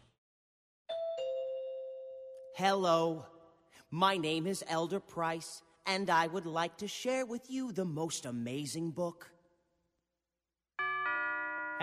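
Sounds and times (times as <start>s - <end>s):
two-tone doorbell chime: 0.9s - 2.6s, 10.8s - 11.8s
speech: 2.6s - 9.4s.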